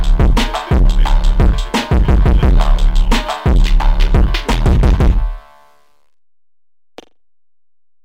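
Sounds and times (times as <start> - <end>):
low bass remix: 0.0 - 5.7.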